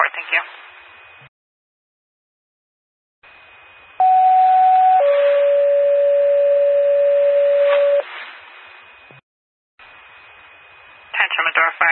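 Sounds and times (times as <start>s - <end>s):
911 paging system test tones: 4.0s - 8.0s.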